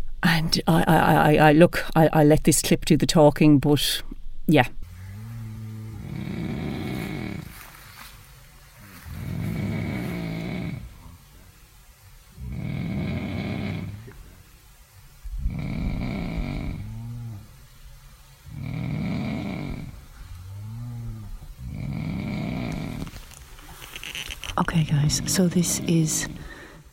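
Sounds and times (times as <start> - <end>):
speech: 0.2 - 4.8, 25.1 - 26.5
person snoring loudly in a nearby tent: 5.0 - 7.6, 9.0 - 11.2, 12.4 - 14.2, 15.3 - 17.5, 18.5 - 23.2.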